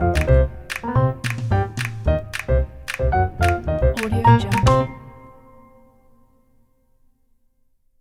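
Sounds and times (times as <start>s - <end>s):
jazz music: 0.0s - 5.6s.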